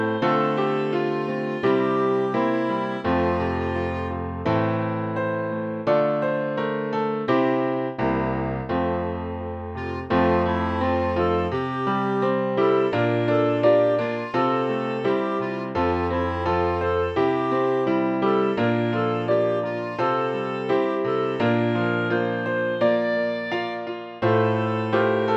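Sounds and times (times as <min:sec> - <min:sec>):
piano accompaniment: 0:00.0 - 0:25.3.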